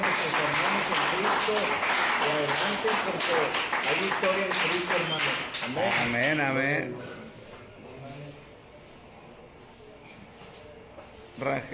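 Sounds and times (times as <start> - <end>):
applause: 0.0 - 6.4
speech: 2.8 - 7.2, 11.4 - 11.7.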